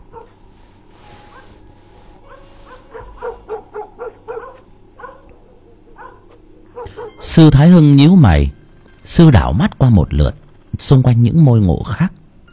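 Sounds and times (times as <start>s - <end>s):
distant dog barking: 0.0s - 0.4s, 1.2s - 7.4s
speech: 7.4s - 12.2s.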